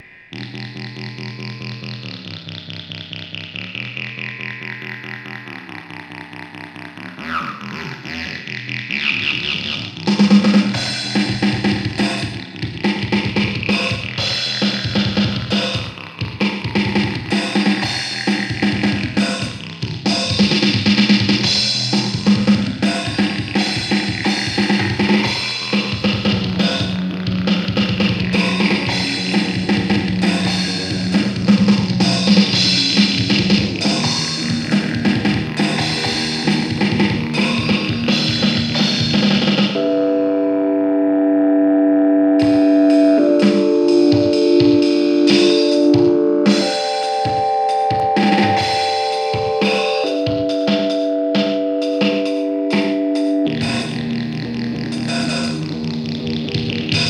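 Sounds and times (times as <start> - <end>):
guitar: 0.0 - 57.0.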